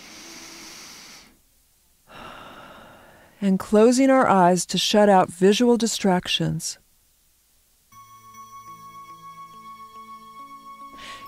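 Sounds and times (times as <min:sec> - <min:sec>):
deep cleansing breaths in a guided meditation: 0:00.0 - 0:01.4, 0:02.1 - 0:03.4, 0:11.0 - 0:11.2
speech: 0:03.4 - 0:06.8.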